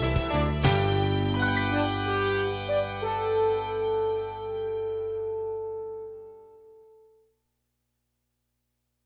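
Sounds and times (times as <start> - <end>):
promo background music bed: 0.0 - 7.2.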